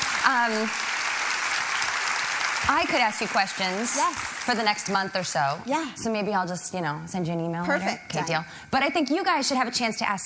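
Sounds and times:
audience applause: 0.0 - 5.0
speech: 0.2 - 0.9, 2.6 - 10.2.

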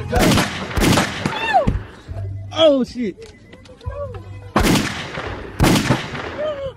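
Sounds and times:
gunshots in a played video: 0.1 - 1.9, 4.6 - 6.7
speech: 2.6 - 3.4.

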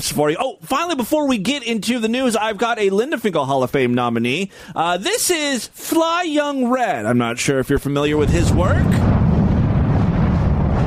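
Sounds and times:
speech: 0.0 - 9.1
explosion sound effect before rap song: 8.0 - 10.8.

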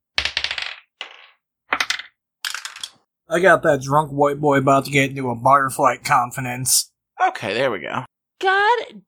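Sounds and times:
dice rattling on a hard surface: 0.2 - 3.0
speech: 3.3 - 9.0.

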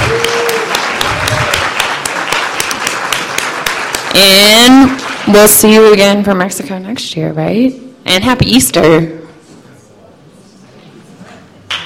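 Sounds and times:
round of applause: 0.0 - 5.3
speech: 4.2 - 9.2.

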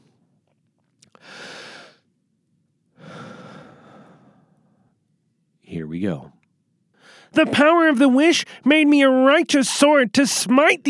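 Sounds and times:
deep breath: 1.1 - 2.1, 2.9 - 5.0, 6.9 - 7.4
speech: 5.9 - 6.4, 7.3 - 10.8.

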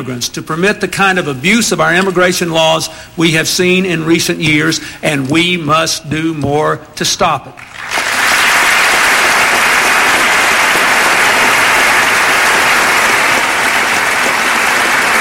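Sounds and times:
speech: 0.0 - 7.9
people on both sides of the aisle applauding: 7.6 - 15.1.

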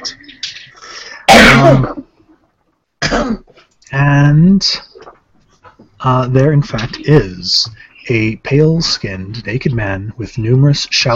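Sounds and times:
person coughing after something went down the wrong way: 1.3 - 2.1, 3.0 - 3.5
throat clearing after something went down the wrong way: 1.3 - 2.1
speech: 1.6 - 2.1, 4.3 - 4.9, 6.0 - 11.1.

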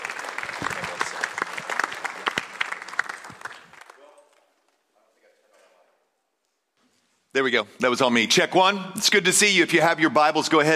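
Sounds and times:
conference audience clapping to welcome a speaker: 0.0 - 4.9
speech: 7.4 - 10.7.

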